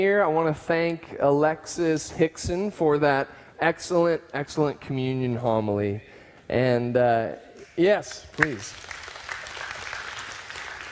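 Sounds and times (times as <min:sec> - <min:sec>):
speech: 0:00.0 - 0:09.0
crowd applauding: 0:08.4 - 0:10.9.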